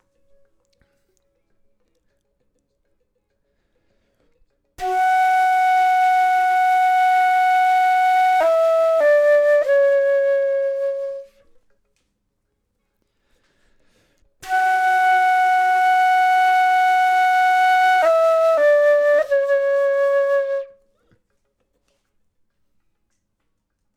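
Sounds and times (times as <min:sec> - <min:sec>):
flute: 0:04.8 - 0:11.7, 0:14.4 - 0:21.1.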